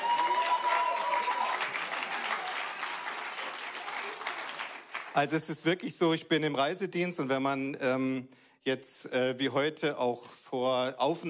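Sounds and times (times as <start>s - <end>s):
audience applause: 0.0s - 5.2s
speech: 5.2s - 11.2s.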